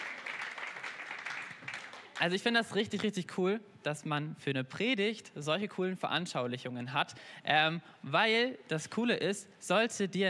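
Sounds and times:
audience applauding: 0.0s - 2.2s
speech: 2.2s - 10.2s.

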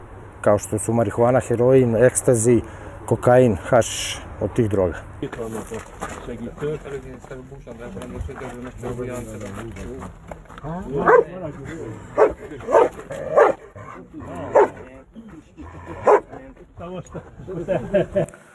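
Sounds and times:
speech: 0.4s - 14.8s, 16.8s - 18.4s
drug-sniffing dog barking: 11.0s - 11.4s, 12.2s - 14.8s, 16.0s - 16.3s
laughter: 11.5s - 13.2s, 15.2s - 18.5s.

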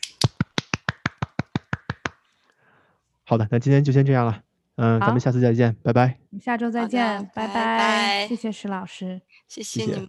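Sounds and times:
hand clapping: 0.0s - 2.3s
speech: 3.3s - 10.0s.

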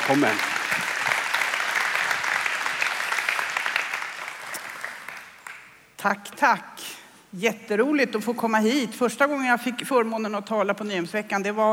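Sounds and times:
audience applause: 0.0s - 5.8s
speech: 0.1s - 0.6s, 6.0s - 11.7s.

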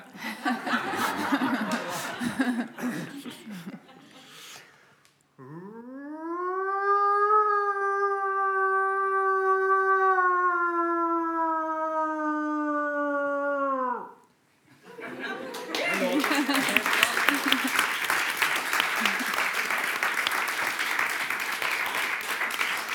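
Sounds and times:
audience applause: 0.0s - 3.6s, 15.2s - 22.9s
audience laughing: 0.0s - 4.4s, 14.9s - 20.9s
person imitating a wolf howl: 5.4s - 14.2s.

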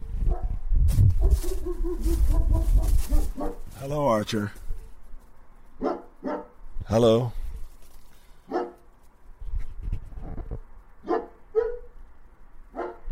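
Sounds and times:
dog barking: 0.3s - 0.6s, 1.2s - 3.7s, 5.8s - 6.6s, 8.5s - 8.9s, 11.0s - 12.0s, 12.7s - 13.1s
speech: 3.9s - 4.6s, 6.9s - 7.4s.

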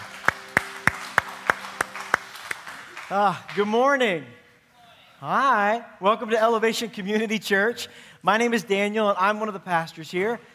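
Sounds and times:
crowd clapping in unison: 0.0s - 4.2s
speech: 3.1s - 4.4s, 5.2s - 10.5s.

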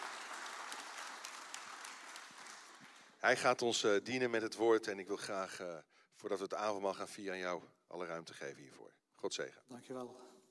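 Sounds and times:
warm applause at a church service: 0.0s - 3.2s
speech: 3.2s - 10.4s.

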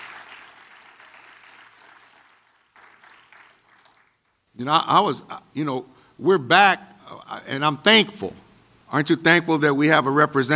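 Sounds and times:
audience clapping: 0.0s - 4.4s
speech: 4.6s - 10.5s.

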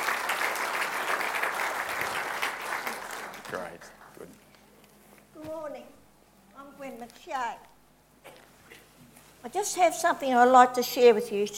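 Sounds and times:
crowd clapping: 0.0s - 4.7s
speech: 3.5s - 4.4s, 5.4s - 6.0s, 6.6s - 8.4s, 9.4s - 11.5s.

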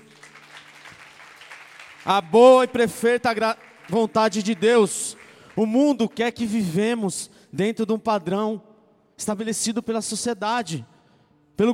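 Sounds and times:
audience applause: 0.0s - 5.8s
speech: 2.0s - 10.9s, 11.6s - 11.7s.

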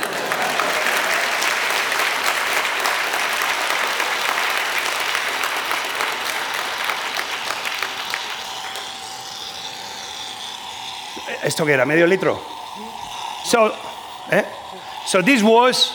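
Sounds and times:
applause: 0.0s - 9.0s
speech: 11.5s - 12.6s, 13.5s - 14.5s, 15.1s - 15.9s.

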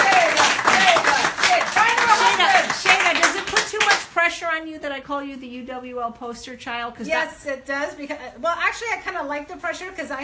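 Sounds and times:
voices calling out and cheering: 0.0s - 3.5s
crowd clapping: 0.0s - 4.1s
speech: 5.0s - 10.2s.

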